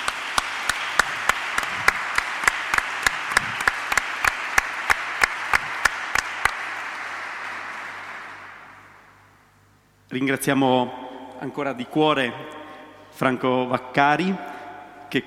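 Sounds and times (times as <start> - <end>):
audience applause: 0.0 - 9.2
speech: 10.1 - 12.6, 13.2 - 14.5.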